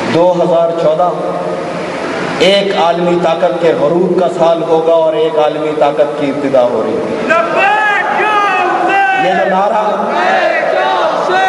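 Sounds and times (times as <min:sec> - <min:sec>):
speech: 0:00.2 - 0:01.5, 0:02.4 - 0:08.3, 0:09.2 - 0:10.5
large crowd chanting the Urdu slogan murdabad: 0:07.3 - 0:11.4.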